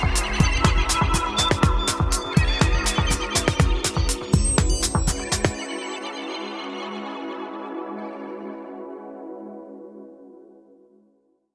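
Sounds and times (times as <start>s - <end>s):
technical outro music at 120 bpm: 0.0s - 5.6s.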